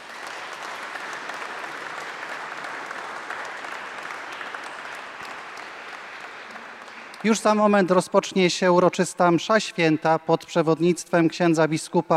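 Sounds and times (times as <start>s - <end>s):
audience applause: 0.0s - 8.3s
speech: 7.2s - 12.1s.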